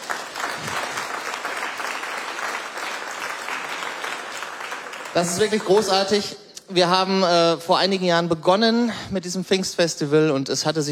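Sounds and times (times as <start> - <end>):
audience applause: 0.0 - 6.2
speech: 5.2 - 10.9.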